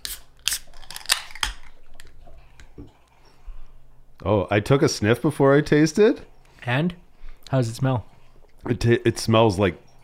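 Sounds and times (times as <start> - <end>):
beer can cracked open: 0.0 - 2.1
speech: 4.2 - 10.0.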